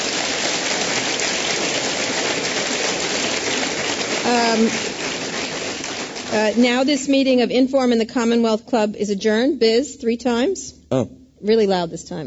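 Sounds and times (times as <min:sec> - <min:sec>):
audience applause: 0:00.0 - 0:07.0
speech: 0:04.5 - 0:04.9, 0:06.3 - 0:12.2
tonal voice-like sound: 0:10.9 - 0:11.1.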